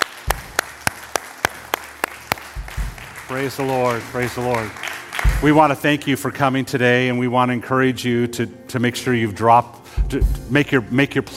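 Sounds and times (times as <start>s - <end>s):
audience clapping in unison: 0.0s - 5.9s
speech: 3.3s - 11.3s.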